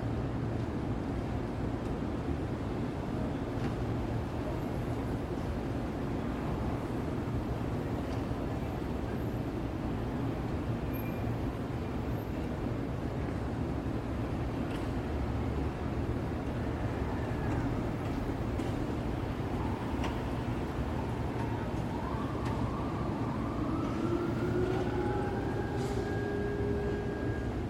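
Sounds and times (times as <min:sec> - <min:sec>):
Midtown Manhattan city traffic rumble on 33rd street: 0:00.0 - 0:27.6
siren-like tone: 0:19.3 - 0:27.6.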